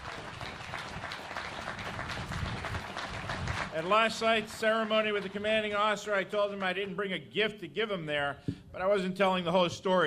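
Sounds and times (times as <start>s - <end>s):
audience applause: 0.0s - 6.8s
speech: 3.8s - 10.0s.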